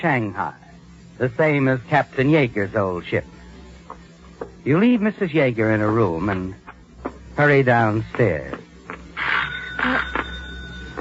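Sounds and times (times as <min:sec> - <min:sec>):
speech: 0:00.0 - 0:00.6, 0:01.2 - 0:03.3, 0:04.6 - 0:06.6, 0:07.4 - 0:08.6
doorbell ringing: 0:09.4 - 0:10.9.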